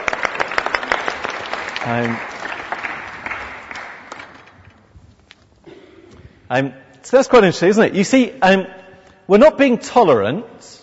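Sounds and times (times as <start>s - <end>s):
audience applause: 0.0s - 4.6s
speech: 1.8s - 2.3s, 6.5s - 10.8s.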